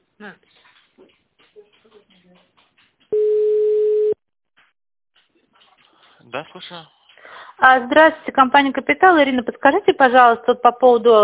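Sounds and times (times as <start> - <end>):
speech: 0.2 - 1.7, 6.3 - 7.0, 7.6 - 11.2
telephone ringback tone while connecting to an office extension: 3.2 - 4.2.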